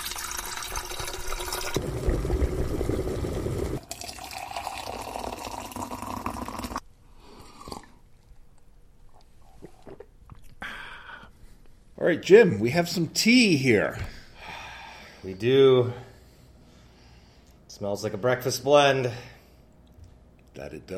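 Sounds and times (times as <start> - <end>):
water running from a tap into a kettle for tea: 0.0 - 6.8
speech: 12.1 - 14.2, 15.4 - 16.1, 17.8 - 19.3, 20.6 - 20.9.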